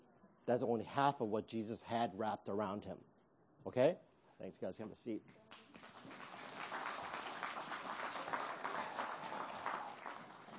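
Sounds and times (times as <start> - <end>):
speech: 0.5 - 6.2
audience applause: 5.7 - 10.5.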